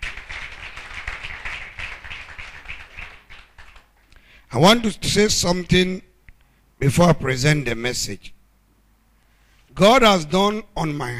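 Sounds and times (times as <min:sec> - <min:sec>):
audience clapping hands: 0:00.0 - 0:04.1
speech: 0:04.5 - 0:06.1, 0:06.8 - 0:08.4, 0:09.8 - 0:11.1.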